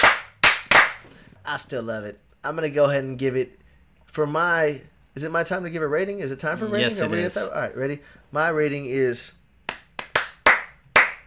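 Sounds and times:
hand claps: 0.0s - 1.1s, 9.7s - 11.2s
speech: 1.5s - 3.6s, 4.2s - 9.4s.

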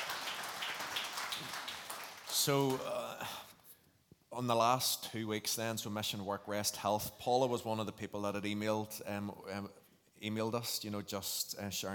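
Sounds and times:
audience applause: 0.0s - 2.8s
speech: 2.4s - 3.4s, 4.4s - 11.9s.

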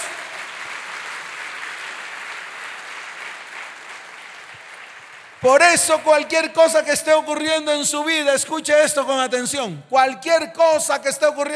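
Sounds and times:
audience applause: 0.0s - 5.6s
speech: 5.4s - 11.5s.

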